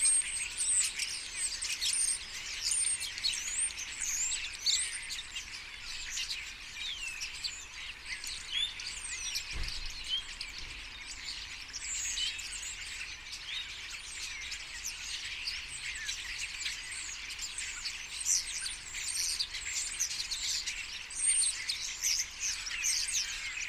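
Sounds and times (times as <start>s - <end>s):
common starlings chattering in a group: 0.0s - 23.6s.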